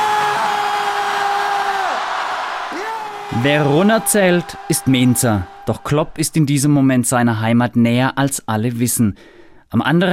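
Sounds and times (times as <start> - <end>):
large crowd shouting as loud as possible: 0.0 - 6.6
speech: 3.3 - 10.1.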